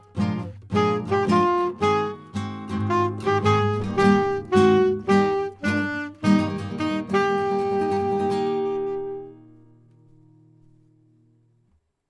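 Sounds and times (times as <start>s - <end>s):
saxophone rising and falling: 0.7s - 9.4s.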